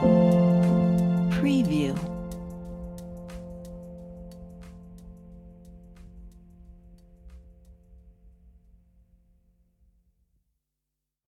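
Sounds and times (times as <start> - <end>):
different music loops: 0.0 - 4.9.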